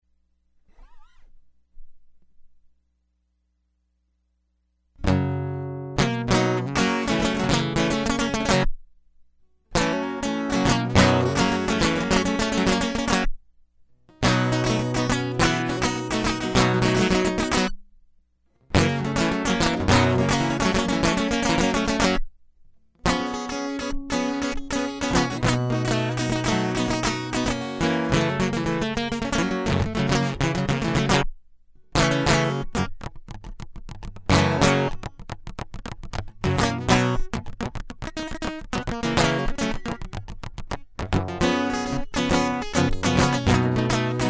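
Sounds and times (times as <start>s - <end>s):
guitar loop: 5.0s - 8.7s, 9.7s - 13.3s, 14.1s - 17.8s, 18.7s - 22.2s, 23.0s - 31.3s, 31.9s - 44.2s.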